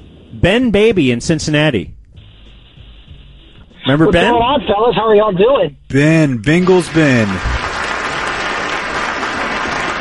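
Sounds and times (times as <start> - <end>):
speech: 0.4 - 2.0, 3.9 - 7.5
applause: 6.7 - 10.0.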